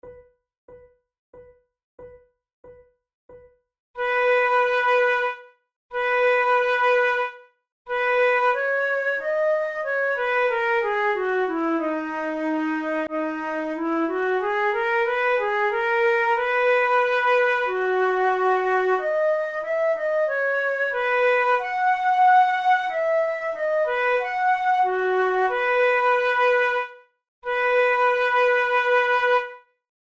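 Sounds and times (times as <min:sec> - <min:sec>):
flute prelude: 0:04.0 - 0:29.7.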